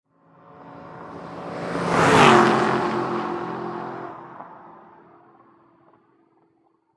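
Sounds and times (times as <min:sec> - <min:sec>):
2008 Aston Martin passing by at high speed: 0:00.2 - 0:06.7.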